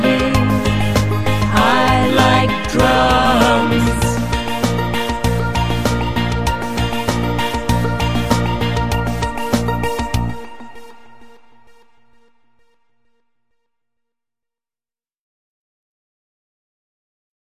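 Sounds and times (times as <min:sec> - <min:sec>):
drums playing: 0:00.0 - 0:10.0.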